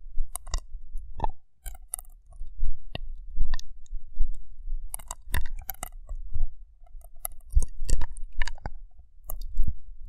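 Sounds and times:
sharp wet clicks and snaps of rough brain cleaning and picking: 0.3s - 3.7s, 4.9s - 6.2s, 7.0s - 9.6s.

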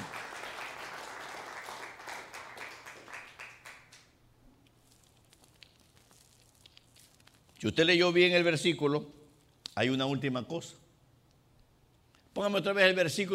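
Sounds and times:
audience applause: 0.0s - 4.1s
speech: 7.6s - 9.2s, 9.8s - 10.8s, 12.4s - 13.3s.

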